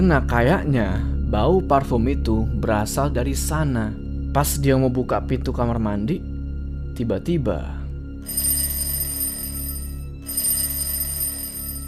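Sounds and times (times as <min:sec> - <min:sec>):
speech: 0:00.0 - 0:06.3, 0:07.0 - 0:08.5
electronic doorbell ringing: 0:08.2 - 0:11.8.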